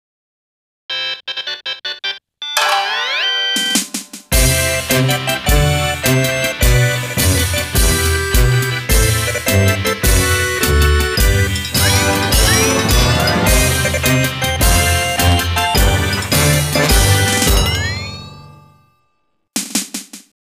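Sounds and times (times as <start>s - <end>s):
background music: 2.6s - 18.5s.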